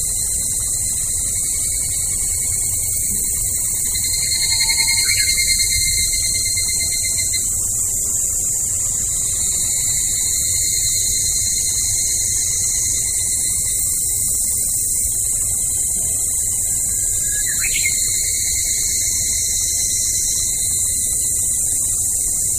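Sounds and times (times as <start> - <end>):
evening cicada call: 0.0 - 22.5.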